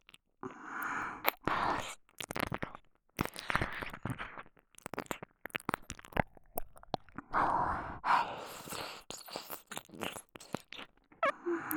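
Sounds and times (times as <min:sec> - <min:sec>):
ear licking while hugging: 0:00.9 - 0:07.2, 0:08.4 - 0:11.7
person whispering: 0:11.3 - 0:11.7.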